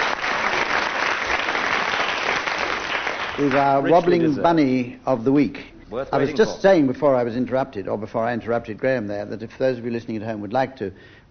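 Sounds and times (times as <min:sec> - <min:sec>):
audience applause: 0:00.0 - 0:04.2
speech: 0:03.4 - 0:11.3.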